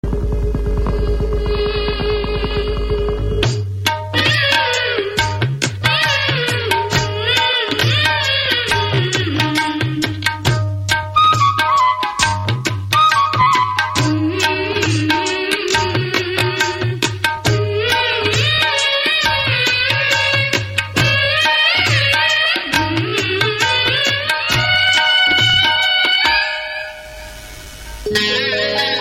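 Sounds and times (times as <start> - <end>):
tabla: 0.0 - 29.0
woman singing: 0.6 - 10.3, 13.3 - 27.0.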